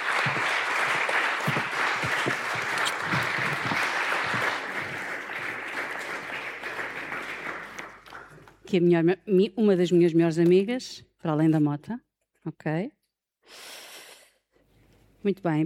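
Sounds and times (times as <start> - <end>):
crowd applauding: 0.0 - 8.6
speech: 8.7 - 13.8, 15.2 - 15.6.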